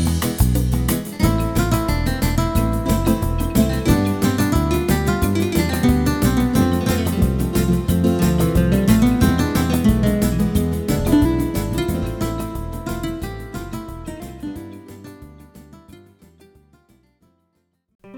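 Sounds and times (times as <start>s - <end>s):
pop and modern sound examples: 0.1s - 14.3s.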